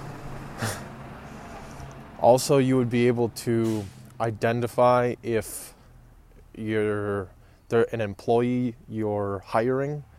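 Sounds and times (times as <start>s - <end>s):
bus passing outside: 0.0s - 6.3s
speech: 2.2s - 5.8s, 6.6s - 10.1s.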